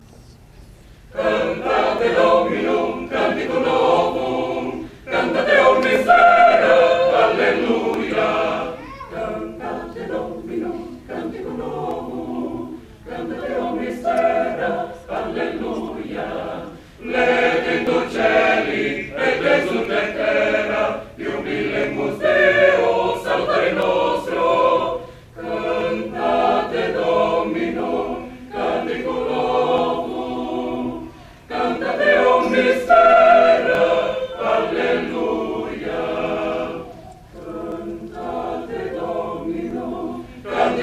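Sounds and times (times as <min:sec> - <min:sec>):
choir singing: 0:01.1 - 0:40.8.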